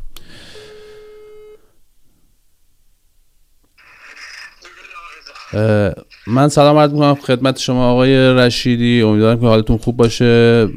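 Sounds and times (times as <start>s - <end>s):
telephone tone as a call is placed to a guest: 0.5s - 1.6s
speech: 5.5s - 10.7s.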